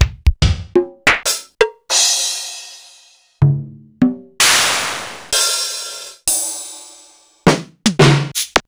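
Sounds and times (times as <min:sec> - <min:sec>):
Sequential Circuits Studio-440 drum machine: 0:00.0 - 0:06.9, 0:07.5 - 0:08.6.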